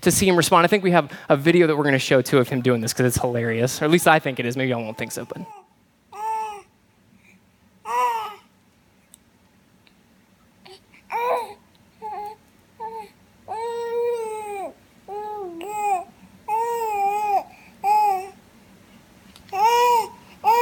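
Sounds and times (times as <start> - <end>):
speech: 0.0 - 5.6
low steady hum: 0.0 - 20.6
baby babbling loudly at his toys: 5.0 - 5.6, 7.9 - 8.4, 11.1 - 18.4, 19.5 - 20.6.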